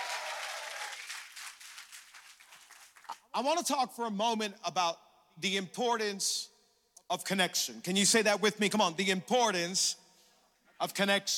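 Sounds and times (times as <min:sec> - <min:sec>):
church congregation applauding at a 10 a.m. service: 0:00.0 - 0:03.3
speech: 0:03.4 - 0:06.5, 0:07.1 - 0:10.0, 0:10.8 - 0:11.3.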